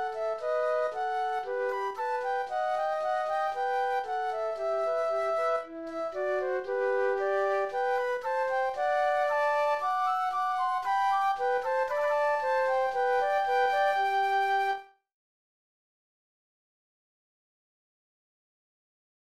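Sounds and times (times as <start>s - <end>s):
classical air flute duet: 0.0s - 15.0s.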